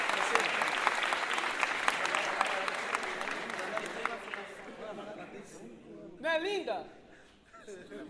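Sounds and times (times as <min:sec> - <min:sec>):
audience applause: 0:00.0 - 0:04.8
speech: 0:06.4 - 0:07.0.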